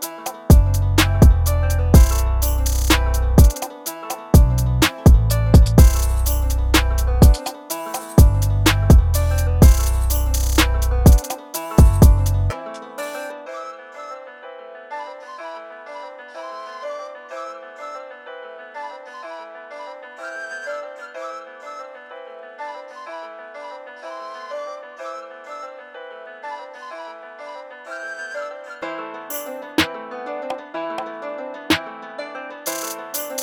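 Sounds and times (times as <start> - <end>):
beats: 0.0 - 13.1, 32.7 - 33.4.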